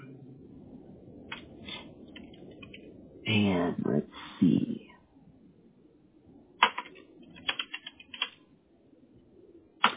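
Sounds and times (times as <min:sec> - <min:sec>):
typing on a computer keyboard: 0:02.1 - 0:02.9, 0:06.6 - 0:08.4
speech: 0:03.3 - 0:04.7.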